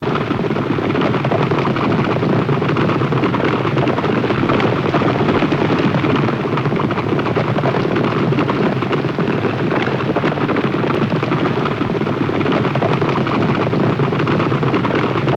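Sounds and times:
group of horses galloping: 0:00.0 - 0:15.3.

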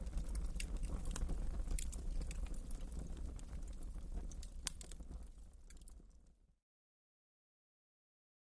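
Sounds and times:
fireplace stirred with a poker: 0:00.0 - 0:06.2.

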